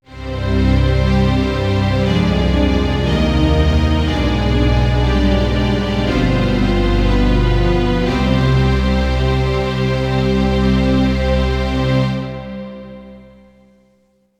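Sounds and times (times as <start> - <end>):
music: 0.0 - 14.3.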